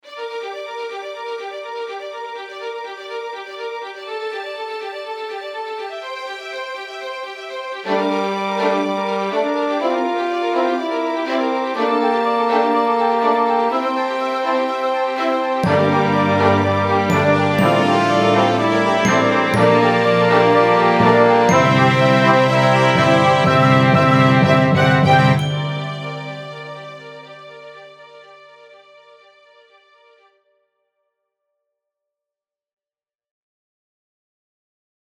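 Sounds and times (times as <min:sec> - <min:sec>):
fanfare: 0:07.9 - 0:28.3.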